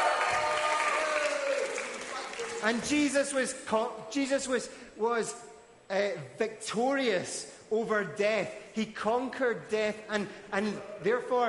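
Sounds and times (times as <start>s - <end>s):
crowd cheering and clapping: 0.0s - 2.8s
speech: 2.6s - 11.4s.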